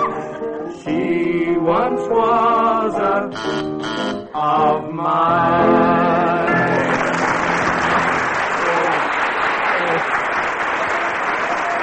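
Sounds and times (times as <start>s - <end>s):
sung duet: 0.0s - 7.2s
speech: 0.9s - 6.4s
audience cheering and applause: 6.8s - 11.8s.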